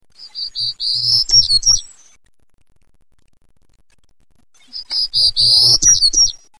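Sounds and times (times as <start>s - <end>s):
Townsend's Warbler: 0.1s - 2.2s, 4.6s - 6.5s.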